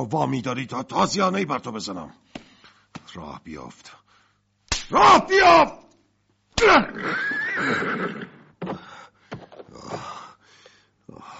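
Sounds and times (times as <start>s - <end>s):
speech: 0.0s - 2.4s, 3.1s - 4.0s, 4.9s - 5.8s, 6.6s - 8.2s
horse Rakhsh whinnying: 6.6s - 8.5s.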